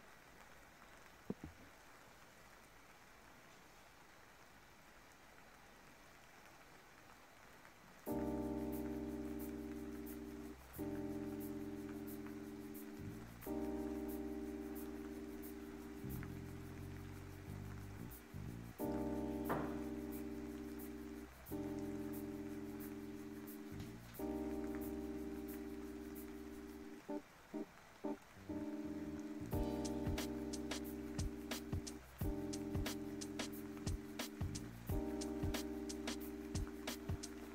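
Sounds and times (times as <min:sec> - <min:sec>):
soft light rain hiss: 0:00.0 - 0:37.5
gentle sustained chords: 0:08.1 - 0:27.2, 0:28.1 - 0:37.5
scattered ticking drops: 0:08.2 - 0:26.9, 0:29.0 - 0:37.5.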